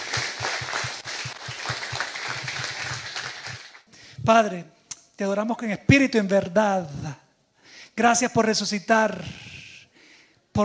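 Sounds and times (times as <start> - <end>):
crowd clapping: 0.0 - 3.9
speech: 4.3 - 7.2, 8.0 - 9.4.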